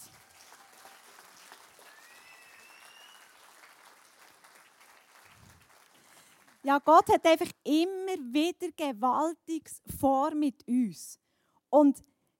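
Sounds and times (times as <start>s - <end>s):
crowd audience applause: 0.0s - 6.7s
speech: 6.6s - 12.1s.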